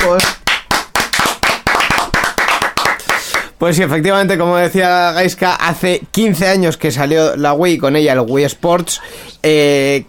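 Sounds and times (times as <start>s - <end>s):
speech: 0.0s - 0.4s, 3.6s - 10.0s
applause: 0.0s - 3.6s.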